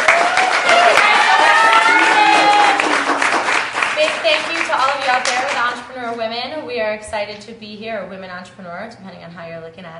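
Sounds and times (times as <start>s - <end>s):
excited voices cheering: 0.0s - 3.3s
audience applause: 0.0s - 5.8s
speech: 6.1s - 9.9s.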